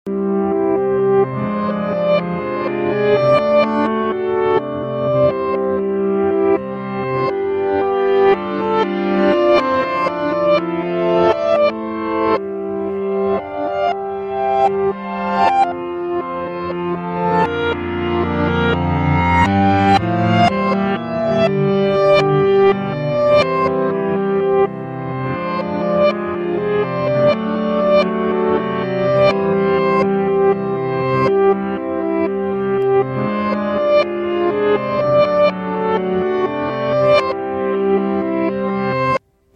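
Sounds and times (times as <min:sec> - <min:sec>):
piano: 0:00.0 - 0:39.5.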